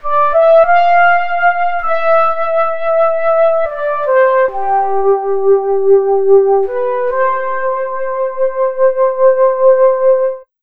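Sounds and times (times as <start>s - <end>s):
synth flute: 0.0s - 10.5s.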